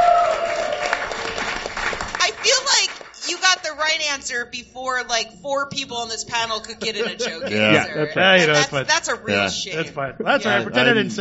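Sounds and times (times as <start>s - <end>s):
audience applause: 0.0s - 3.2s
speech: 3.8s - 11.2s
laughter: 6.5s - 11.2s.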